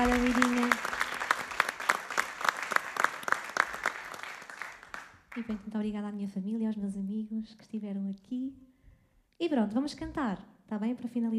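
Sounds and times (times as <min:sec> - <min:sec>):
applause: 0:00.0 - 0:05.7
speech: 0:05.5 - 0:08.7, 0:09.4 - 0:11.3.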